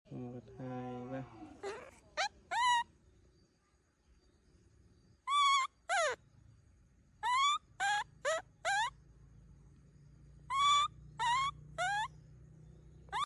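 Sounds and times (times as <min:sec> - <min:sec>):
monkey calling: 0:01.6 - 0:02.9, 0:05.3 - 0:06.2, 0:07.2 - 0:08.9, 0:10.5 - 0:12.1.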